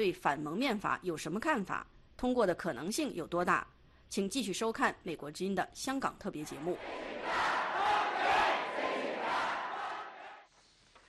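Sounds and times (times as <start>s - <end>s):
speech: 0.0s - 7.4s
protest rally crowd in Hong Kong: 6.4s - 10.4s.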